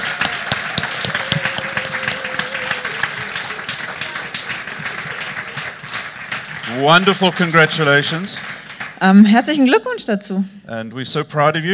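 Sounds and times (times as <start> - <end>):
huge round of applause: 0.0 - 9.0
speech: 6.7 - 11.7.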